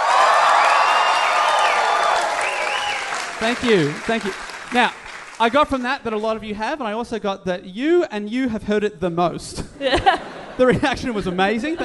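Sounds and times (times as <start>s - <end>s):
cheers and high whoops: 0.0s - 3.4s
crowd applauding: 0.0s - 6.0s
speech: 3.4s - 11.8s.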